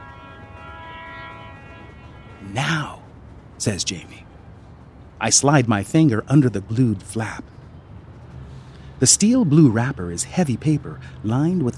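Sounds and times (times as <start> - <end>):
train whistle blowing: 0.0 - 3.0
train rumbling on tracks: 0.0 - 11.7
speech: 2.4 - 3.0, 3.6 - 4.3, 5.2 - 7.6, 9.0 - 11.7.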